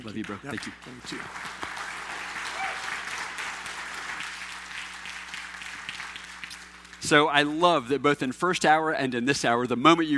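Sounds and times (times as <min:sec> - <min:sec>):
speech: 0:00.0 - 0:01.6, 0:07.1 - 0:10.1
audience clapping: 0:00.0 - 0:07.9
audience cheering: 0:00.5 - 0:07.0.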